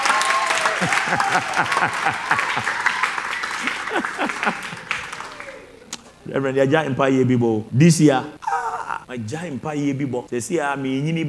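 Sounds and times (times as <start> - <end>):
audience clapping: 0.0 - 6.4
laughter: 0.0 - 7.2, 8.4 - 9.1
speech: 1.1 - 3.0, 3.6 - 4.9, 6.2 - 8.5, 9.1 - 11.2.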